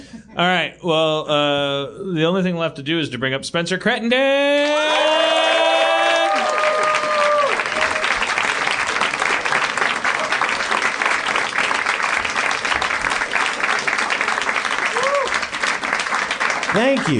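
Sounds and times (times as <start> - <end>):
speech: 0.1 - 5.6, 16.8 - 17.1
whoops and cheers: 4.6 - 8.3, 14.8 - 15.5
audience applause: 5.0 - 17.1.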